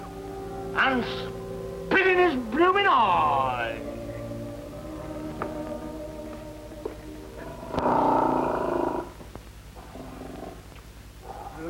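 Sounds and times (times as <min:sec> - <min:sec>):
speech: 0:00.8 - 0:03.9
lion purring: 0:07.4 - 0:10.6.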